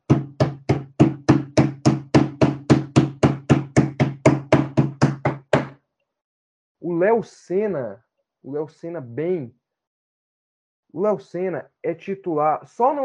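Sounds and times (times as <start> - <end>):
hand banging on a table: 0.0 - 5.8
speech: 7.2 - 9.6, 10.9 - 13.0.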